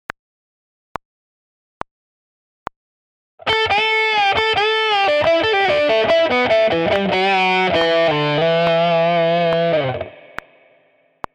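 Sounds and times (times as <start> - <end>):
advanced guitar string bending: 3.4 - 11.3.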